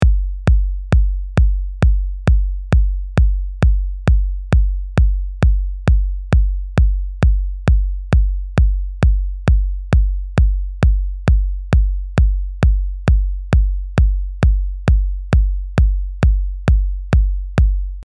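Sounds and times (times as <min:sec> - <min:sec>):
groove music: 0:00.0 - 0:18.0.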